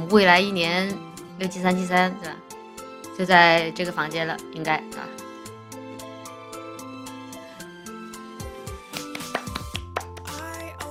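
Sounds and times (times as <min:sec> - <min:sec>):
steady tonal musical background: 0:00.0 - 0:10.8
speech: 0:00.1 - 0:02.4, 0:03.2 - 0:05.2
sharp hand claps: 0:08.8 - 0:10.6.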